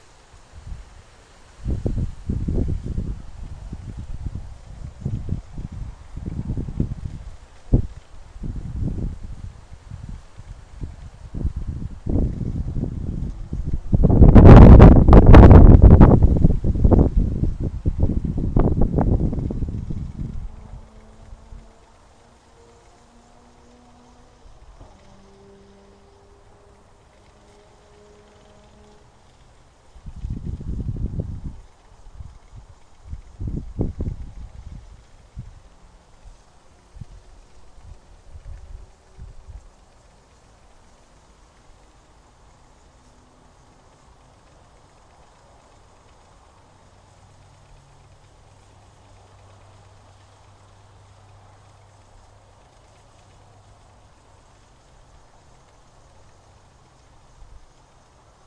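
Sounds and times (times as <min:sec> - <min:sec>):
small wind turbine in a field: 0:00.0 - 0:58.4.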